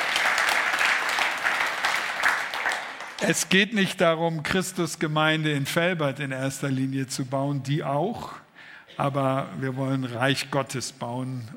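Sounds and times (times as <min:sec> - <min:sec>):
audience applause: 0:00.0 - 0:03.5
speech: 0:03.2 - 0:08.4, 0:09.0 - 0:11.5.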